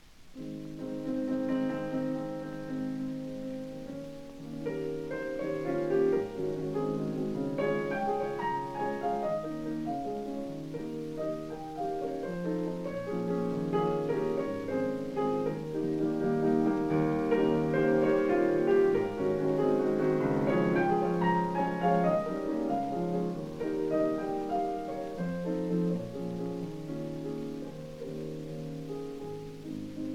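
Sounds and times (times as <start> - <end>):
prelude in A-flat major: 0.3 - 30.1.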